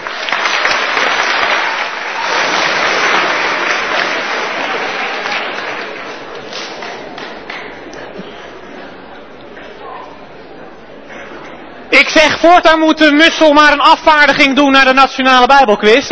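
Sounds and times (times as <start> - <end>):
crowd applause: 0.0 - 9.0
speech: 12.2 - 16.0.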